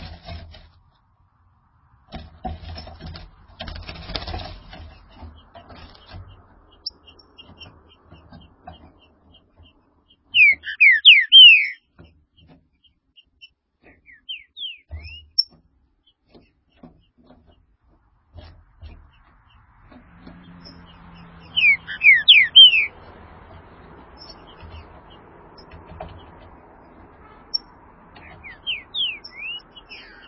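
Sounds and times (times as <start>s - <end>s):
green-winged saltator whistling song: 10.3s - 11.8s, 13.9s - 15.5s, 21.4s - 23.0s, 28.2s - 30.2s.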